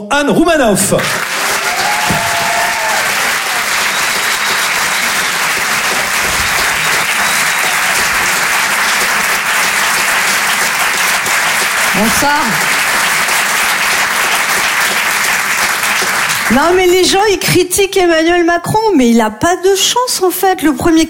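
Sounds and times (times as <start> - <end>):
speech: 0.0 - 1.4, 12.0 - 12.7, 16.5 - 21.0
audience applause in theatre: 0.9 - 17.1
faint whistle: 3.6 - 5.4, 6.5 - 8.1.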